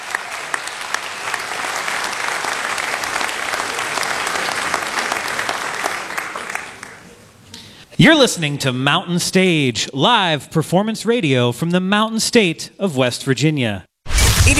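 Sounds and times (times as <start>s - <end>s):
live audience applause: 0.0s - 7.3s
speech: 8.0s - 13.9s.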